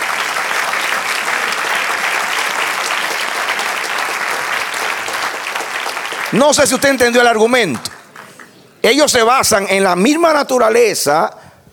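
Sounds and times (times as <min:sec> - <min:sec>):
audience applause: 0:00.0 - 0:08.5
speech: 0:06.3 - 0:08.0, 0:08.8 - 0:11.4.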